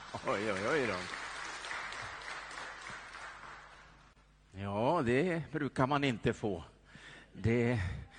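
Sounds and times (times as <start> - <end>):
audience applause: 0.0 - 4.1
speech: 0.1 - 1.2, 4.6 - 6.7, 7.4 - 8.0.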